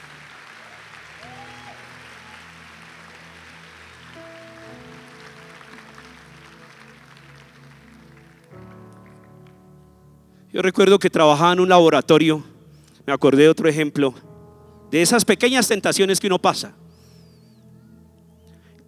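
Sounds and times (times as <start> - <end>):
audience applause: 0.0 - 9.6
sustained keyboard chords: 0.0 - 18.8
speech: 10.6 - 12.5, 13.1 - 14.3, 14.9 - 16.8.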